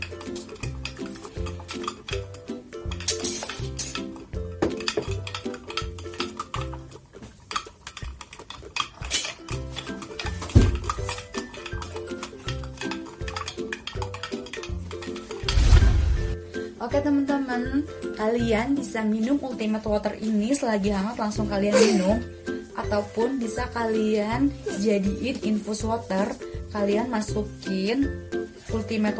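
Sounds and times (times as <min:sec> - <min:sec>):
spoon clinking and scraping against a cup stirring red honey into a warm drink: 0:00.0 - 0:15.5
speech: 0:16.9 - 0:29.1.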